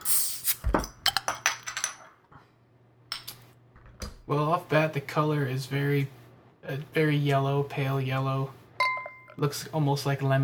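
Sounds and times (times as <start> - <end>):
beer bottle opening hiss: 0.0 - 0.7
speech: 4.3 - 8.6, 9.4 - 10.4
glassy clinks as beer is poured into a glass: 8.8 - 9.4.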